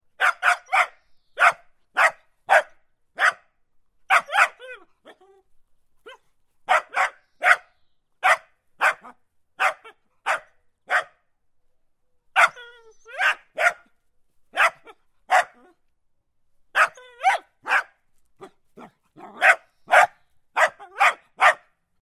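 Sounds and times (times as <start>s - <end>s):
dog barking: 0.2s - 3.5s, 4.1s - 4.8s, 6.1s - 11.2s, 12.4s - 12.6s, 13.2s - 13.9s, 14.5s - 15.7s, 16.8s - 21.8s.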